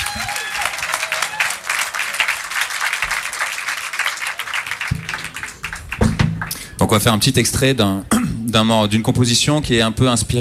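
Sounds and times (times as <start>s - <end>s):
audience applause: 0.0s - 6.8s
speech: 6.9s - 10.4s.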